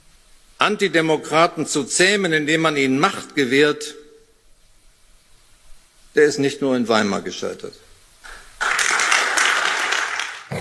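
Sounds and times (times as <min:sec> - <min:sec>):
speech: 0:00.6 - 0:04.0, 0:06.2 - 0:07.8
audience clapping after a political speech by Steinmeier: 0:08.2 - 0:10.5.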